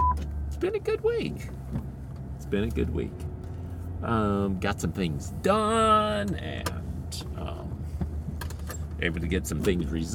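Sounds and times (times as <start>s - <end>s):
car driving home: 0.0s - 10.1s
speech: 0.6s - 3.3s, 4.0s - 7.5s, 9.0s - 10.1s.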